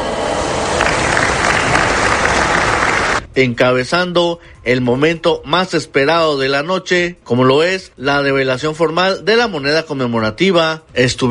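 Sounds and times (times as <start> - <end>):
audience applause: 0.3 - 3.2
speech: 3.4 - 11.3.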